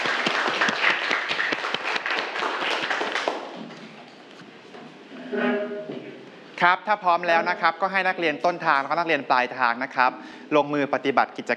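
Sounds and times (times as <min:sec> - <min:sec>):
students clapping: 0:00.0 - 0:03.8
speech: 0:06.6 - 0:11.5.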